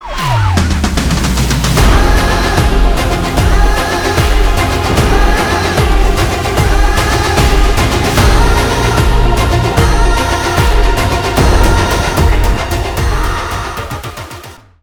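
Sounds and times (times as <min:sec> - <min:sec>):
background music ringtone: 0:00.0 - 0:14.8.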